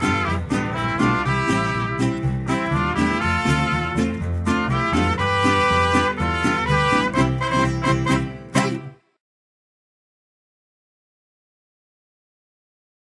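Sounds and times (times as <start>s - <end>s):
mariachi music: 0.0s - 9.2s.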